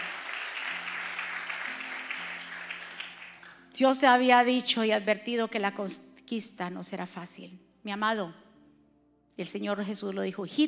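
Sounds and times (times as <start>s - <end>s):
audience applauding: 0.0s - 3.6s
speech: 3.8s - 8.4s, 9.4s - 10.6s.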